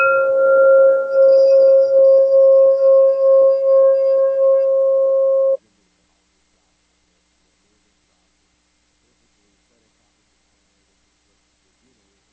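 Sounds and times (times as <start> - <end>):
crystal singing bowl ringing: 0.0 - 5.6.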